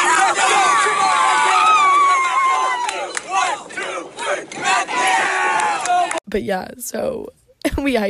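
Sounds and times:
crowd of players yelling and cheering: 0.0 - 6.2
speech: 6.3 - 8.0.

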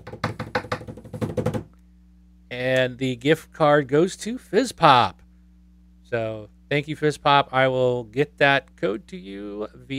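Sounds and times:
drum roll tapped on a desk: 0.0 - 1.7
faint low hum: 0.0 - 9.9
speech: 2.6 - 5.2, 6.1 - 9.9.

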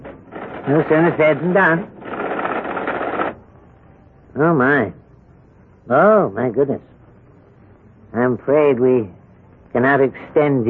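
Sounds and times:
computer printing on a typewriter: 0.0 - 3.4
speech: 0.7 - 2.0, 4.4 - 5.0, 5.9 - 6.9, 8.1 - 10.6.

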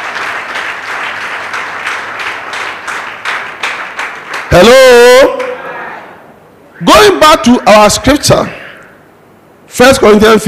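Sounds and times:
crowd clapping: 0.0 - 5.6
speech: 4.6 - 5.3, 6.8 - 8.6, 9.7 - 10.4.

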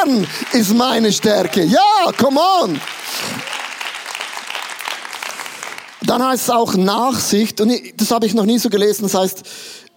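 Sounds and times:
speech: 0.0 - 3.4, 6.1 - 9.8
audience applause: 0.0 - 6.4.

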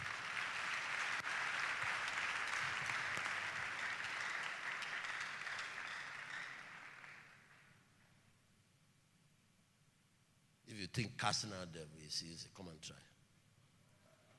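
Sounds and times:
crowd clapping: 0.0 - 7.8
speech: 10.9 - 13.2.

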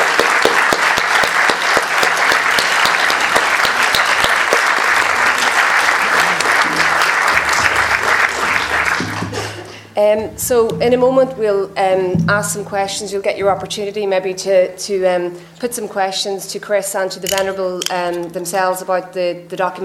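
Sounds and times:
audience applause: 0.0 - 9.8
speech: 10.0 - 19.8.

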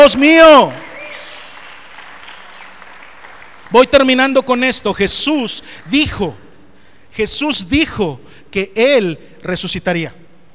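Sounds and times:
speech: 0.0 - 0.8, 3.7 - 6.4, 7.1 - 10.2
audience cheering: 0.0 - 2.6
audience applauding: 0.6 - 4.1.

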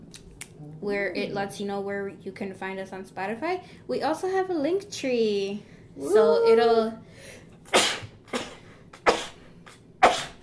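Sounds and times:
speech: 0.8 - 7.8
sneeze: 7.7 - 9.4, 10.0 - 10.4.

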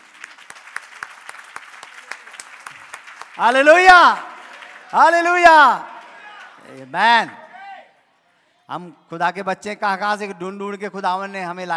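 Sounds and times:
audience clapping: 0.0 - 7.8
speech: 3.4 - 4.3, 4.9 - 5.9, 6.7 - 7.4, 8.7 - 11.7.

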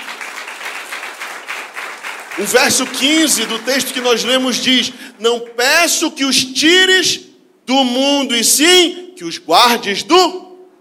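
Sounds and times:
audience applause: 0.0 - 4.3
speech: 2.4 - 10.5.

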